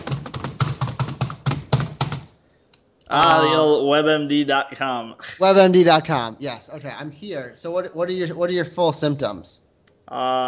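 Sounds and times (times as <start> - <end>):
rapid typing on a computer keyboard: 0.0 - 2.3
speech: 3.1 - 10.4.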